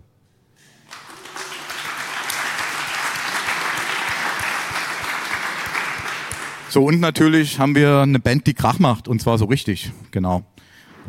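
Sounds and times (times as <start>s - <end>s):
audience applause: 0.8s - 7.0s
speech: 6.8s - 11.0s.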